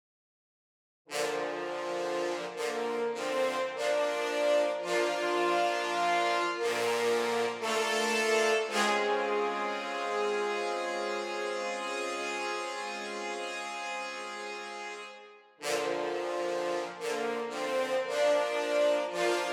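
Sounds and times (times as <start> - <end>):
trombone: 1.1 - 19.5.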